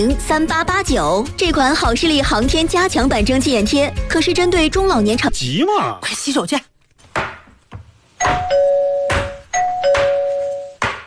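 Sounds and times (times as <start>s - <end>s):
speech: 0.0s - 6.7s
sharp knocking thuds: 7.1s - 11.0s
two-tone electronic doorbell chiming: 8.2s - 10.8s.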